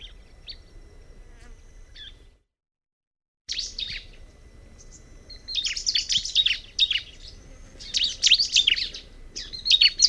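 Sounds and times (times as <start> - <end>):
Bar-winged prinia chirping: 0.0 - 0.8, 1.9 - 2.3, 3.5 - 10.0.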